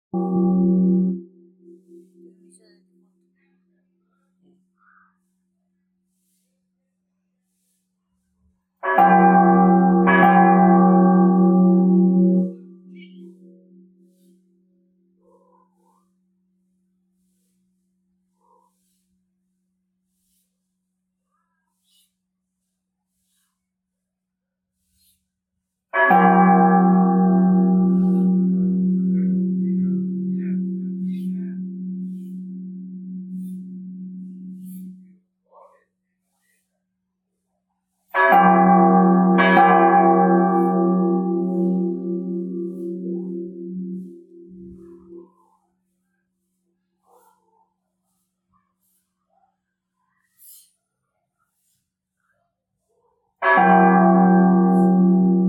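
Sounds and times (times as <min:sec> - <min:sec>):
bell: 0:00.1 - 0:02.9, 0:08.8 - 0:14.4, 0:25.9 - 0:35.2, 0:38.1 - 0:45.6, 0:53.4 - 0:55.4.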